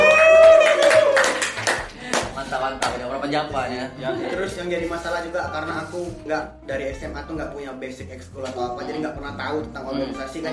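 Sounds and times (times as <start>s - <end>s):
hand clapping: 0.0s - 3.1s
speech: 3.4s - 10.5s.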